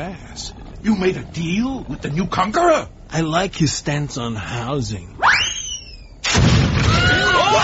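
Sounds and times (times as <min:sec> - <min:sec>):
speech: 0:00.0 - 0:05.4
wavering high whistling tones: 0:05.2 - 0:06.2
explosion of fiery rocks crashing down in an animated battle: 0:06.2 - 0:07.5.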